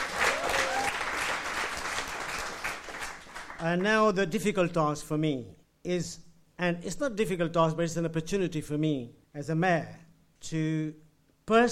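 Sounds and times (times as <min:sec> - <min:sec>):
round of applause: 0:00.0 - 0:03.9
speech: 0:03.6 - 0:11.7.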